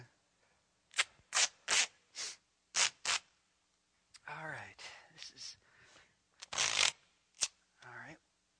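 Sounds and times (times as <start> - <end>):
duct tape being pulled and ripped: 0.9 - 1.9, 2.7 - 3.3, 6.4 - 7.6
person talking: 4.2 - 5.6, 7.8 - 8.2.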